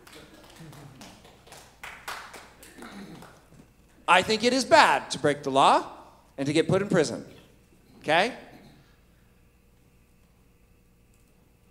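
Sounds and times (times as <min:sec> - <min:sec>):
small audience clapping: 0:00.0 - 0:04.6
speech: 0:04.1 - 0:07.4, 0:08.0 - 0:08.4.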